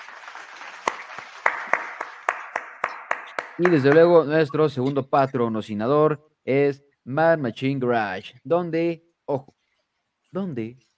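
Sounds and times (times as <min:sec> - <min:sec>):
applause from a small group: 0:00.0 - 0:04.3
speech: 0:03.6 - 0:09.6, 0:10.3 - 0:10.9.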